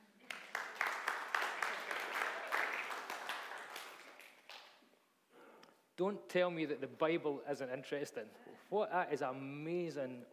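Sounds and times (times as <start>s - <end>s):
audience applauding: 0.2s - 4.8s
speech: 6.0s - 10.3s.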